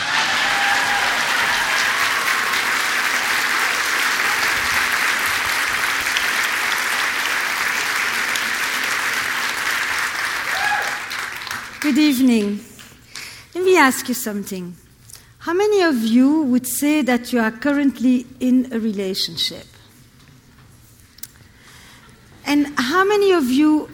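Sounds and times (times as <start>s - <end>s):
audience applause welcoming a speaker at a talk event at the JCCSF: 0.0s - 12.6s
speech: 11.9s - 12.7s, 13.8s - 14.8s, 15.4s - 19.7s, 22.5s - 23.9s.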